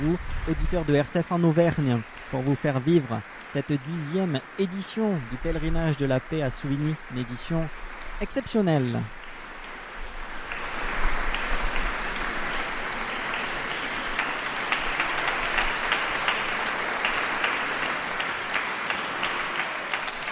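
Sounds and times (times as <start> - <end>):
speech: 0.0 - 9.2
sustained applause inside a priory church: 0.0 - 20.3.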